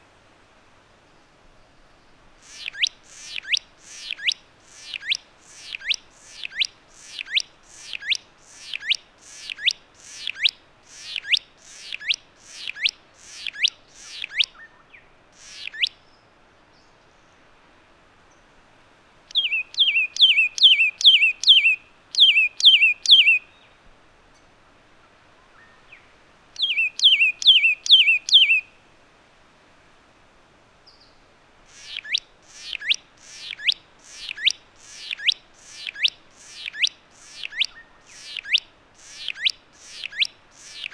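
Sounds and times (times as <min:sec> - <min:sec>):
Satin Flycatcher Myiagra cyanoleuca calling: 0:02.4 - 0:16.0, 0:19.3 - 0:23.6, 0:26.6 - 0:28.8, 0:31.7 - 0:40.9.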